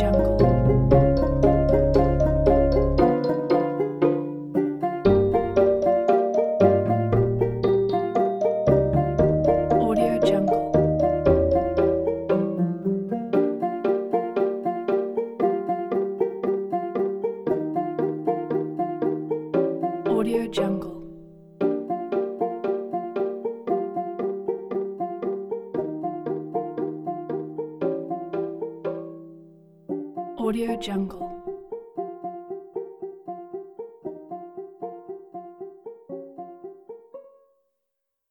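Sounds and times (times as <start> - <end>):
chiptune music: 0.0 - 29.2
clocks ticking: 0.0 - 29.4.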